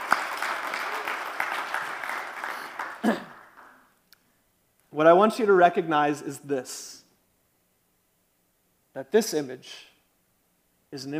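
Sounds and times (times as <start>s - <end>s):
crowd applause: 0.0s - 3.8s
speech: 3.0s - 3.3s, 4.9s - 7.0s, 9.0s - 9.9s, 10.9s - 11.1s.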